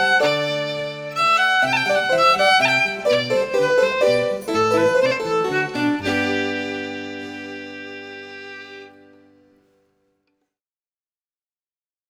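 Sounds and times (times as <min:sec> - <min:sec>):
fiddle minuet: 0:00.0 - 0:09.5.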